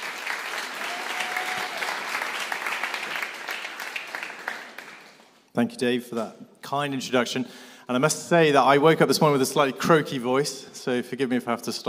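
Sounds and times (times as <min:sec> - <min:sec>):
audience applause: 0:00.0 - 0:05.4
speech: 0:05.6 - 0:11.8.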